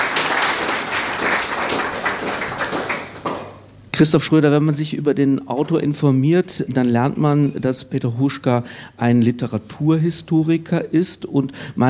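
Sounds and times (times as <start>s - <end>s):
audience applause after a reading from a German translation of a poetry collection: 0.0s - 3.6s
speech: 4.0s - 11.8s.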